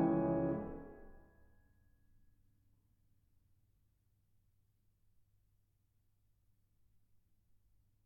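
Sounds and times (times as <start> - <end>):
solo piano: 0.0 - 0.9.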